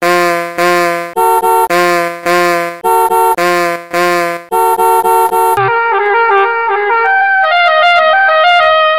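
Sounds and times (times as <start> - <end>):
alarm tone: 0.0 - 8.8.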